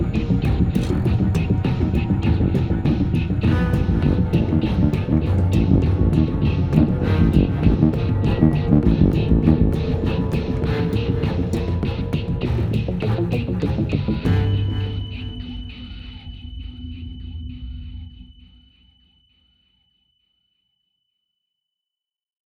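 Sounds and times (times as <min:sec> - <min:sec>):
action loop: 0:00.0 - 0:15.6.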